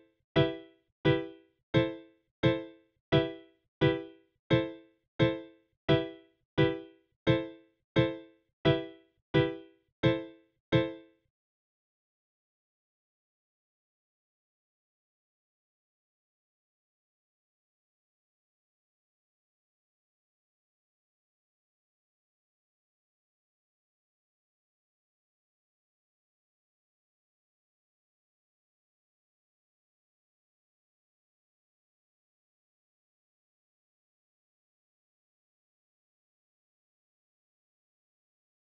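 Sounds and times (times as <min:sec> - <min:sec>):
piano: 0:00.0 - 0:11.2.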